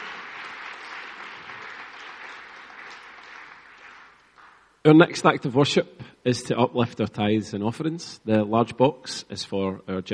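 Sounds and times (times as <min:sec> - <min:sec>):
crowd clapping: 0:00.0 - 0:04.7
speech: 0:04.8 - 0:10.1.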